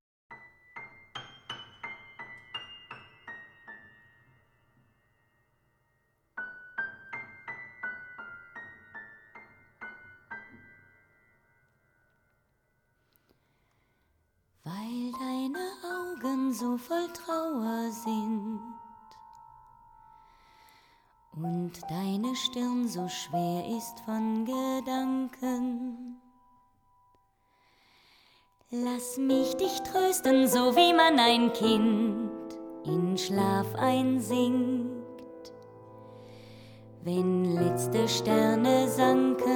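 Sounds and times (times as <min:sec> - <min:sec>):
love song: 0:14.6 - 0:26.6, 0:28.0 - 0:39.5.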